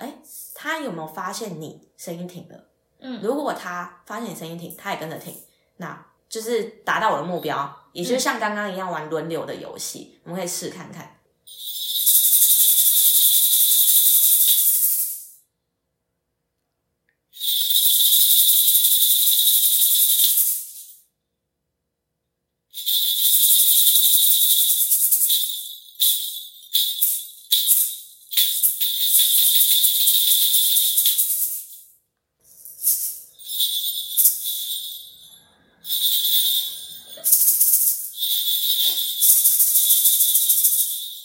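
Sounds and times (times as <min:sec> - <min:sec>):
speech: 0:00.6 - 0:11.7
shaker rattling: 0:11.5 - 0:15.4, 0:17.4 - 0:21.1, 0:22.7 - 0:41.2.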